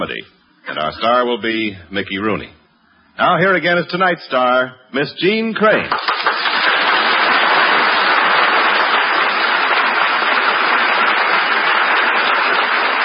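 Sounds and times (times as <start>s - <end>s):
speech: 0.0s - 2.6s, 3.2s - 6.1s
studio audience applause: 5.9s - 13.0s.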